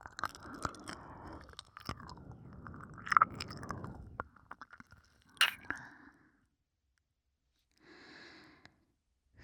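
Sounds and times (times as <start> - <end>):
ear licking: 0.0 - 5.8.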